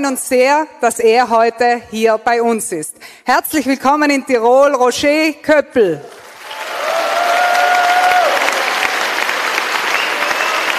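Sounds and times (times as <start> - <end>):
speech: 0.0 - 6.2
roaring applause: 6.1 - 10.7
frenetic cheering: 6.2 - 10.7.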